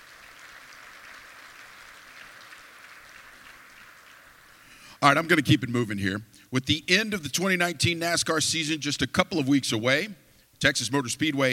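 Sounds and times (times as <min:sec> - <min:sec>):
audience applause: 0:00.0 - 0:04.7
speech: 0:05.0 - 0:11.5.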